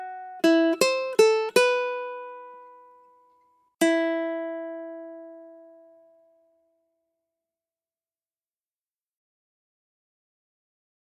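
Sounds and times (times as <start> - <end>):
ukulele accompaniment: 0.0 - 3.2, 3.8 - 6.4.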